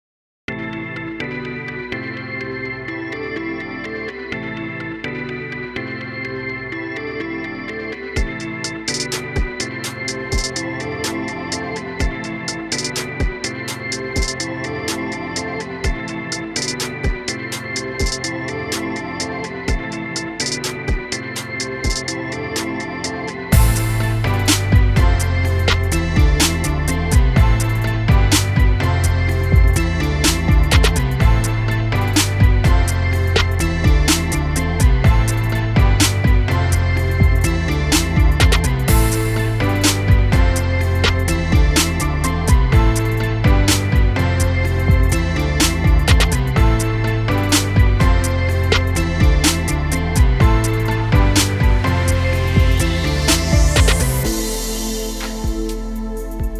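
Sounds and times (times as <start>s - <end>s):
music: 0.5s - 56.5s.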